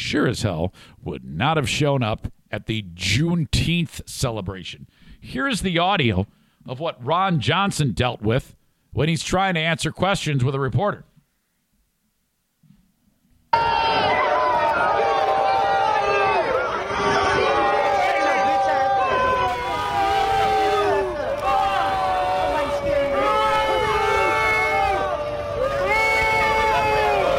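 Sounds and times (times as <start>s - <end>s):
speech: 0.1s - 11.1s
noisy crowd hubbub: 13.6s - 27.3s.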